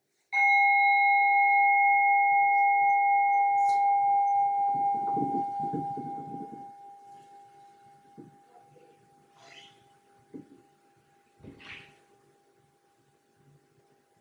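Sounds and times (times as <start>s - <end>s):
single bell struck and ringing: 0.4s - 7.2s.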